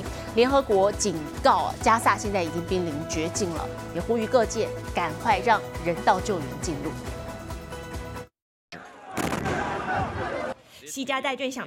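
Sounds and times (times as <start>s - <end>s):
speech: 0.4s - 7.2s, 11.0s - 11.6s
airstrike explosions: 9.2s - 10.5s.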